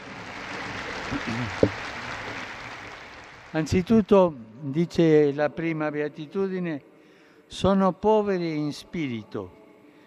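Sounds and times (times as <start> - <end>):
crowd applause: 0.0 - 4.1
speech: 1.1 - 1.9, 3.5 - 6.9, 7.5 - 9.6.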